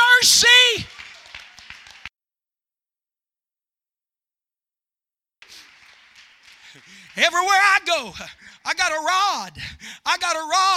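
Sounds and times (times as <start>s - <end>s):
crowd clapping hands: 0.0s - 2.1s, 5.4s - 8.6s
speech: 0.2s - 0.9s, 7.2s - 10.7s.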